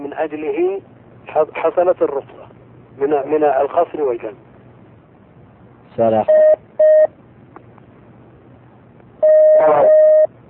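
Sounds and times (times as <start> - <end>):
speech: 0.2 - 2.4, 3.0 - 4.5, 6.0 - 6.6, 9.6 - 10.0
telephone line connection beeps: 6.3 - 7.1, 9.2 - 10.3.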